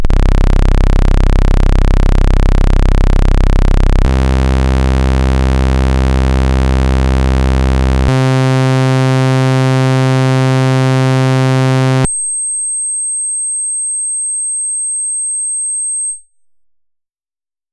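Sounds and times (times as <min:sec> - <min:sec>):
synthesizer saw wave oscillator: 0:00.1 - 0:12.3.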